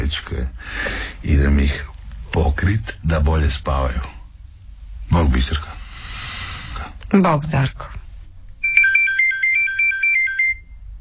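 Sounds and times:
faint low hum: 0.0 - 11.0
speech: 0.1 - 4.2, 5.1 - 5.8, 7.1 - 8.0
telephone ringing with electronic trill: 8.6 - 10.7.

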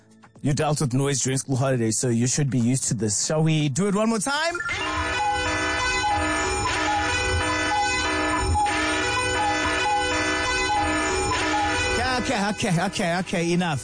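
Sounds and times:
speech: 0.4 - 5.7, 12.3 - 13.8
alarm sound played during show: 4.4 - 13.8.

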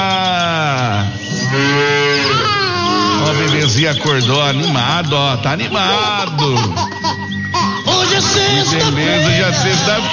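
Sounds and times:
laughter: 0.0 - 10.1
cow mooing at milking time: 1.5 - 3.8
speech: 3.8 - 7.2, 8.2 - 10.1.

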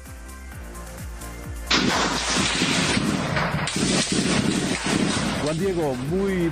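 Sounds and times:
bursts of gunfire after a clash between armed groups: 1.7 - 6.5
speech: 5.5 - 6.5.

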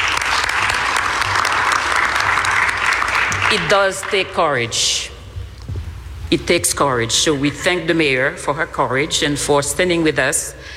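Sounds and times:
crowd clapping: 0.0 - 4.4
speech: 3.5 - 5.1, 6.3 - 10.7.

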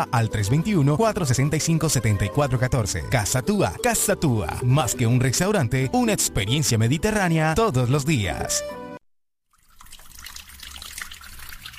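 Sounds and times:
speech: 0.0 - 8.8
water running from a tap: 9.6 - 11.7.

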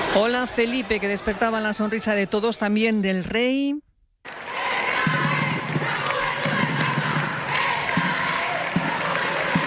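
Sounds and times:
speech: 0.1 - 4.3
small crowd applauding: 4.3 - 9.6.

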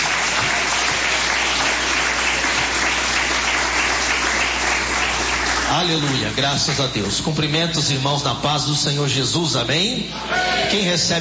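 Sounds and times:
people clapping: 0.0 - 7.8
speech: 5.8 - 11.1.

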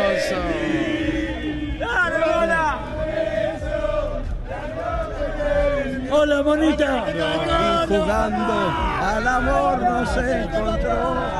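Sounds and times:
stadium crowd cheering an arriving performer: 0.0 - 11.3
speech: 6.4 - 11.3.

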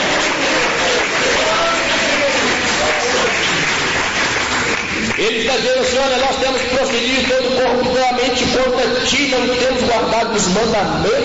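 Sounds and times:
audience applauding: 0.0 - 7.5
speech: 5.3 - 11.2.

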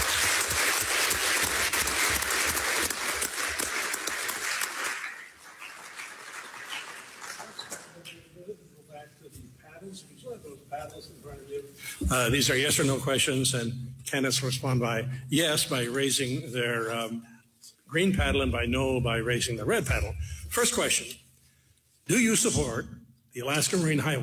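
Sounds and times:
audience applause for candidates: 0.0 - 8.0
speech: 10.8 - 17.3, 17.9 - 21.2, 22.1 - 24.2.

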